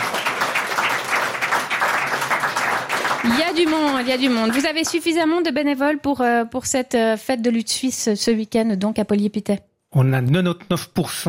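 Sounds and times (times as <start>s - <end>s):
crowd applauding: 0.0s - 5.2s
speech: 3.3s - 11.2s.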